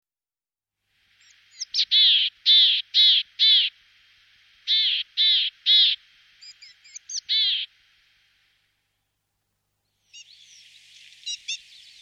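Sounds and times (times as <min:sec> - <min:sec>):
willow tit singing clear whistled notes: 0:01.2 - 0:03.7, 0:04.7 - 0:07.7, 0:09.8 - 0:12.0.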